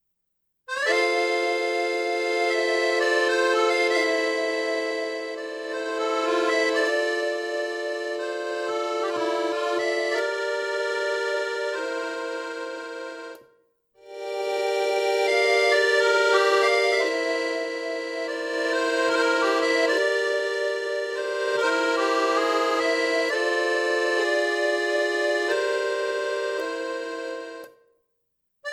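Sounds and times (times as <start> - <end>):
accordion playing a French song: 0.7 - 27.9.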